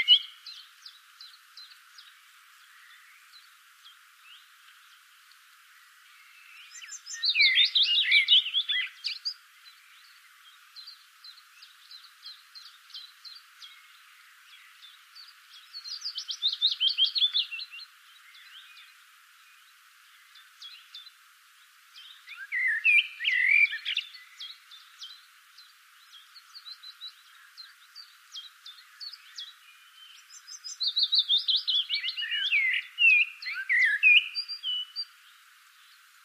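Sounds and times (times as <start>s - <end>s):
common blackbird song: 0.0s - 36.2s.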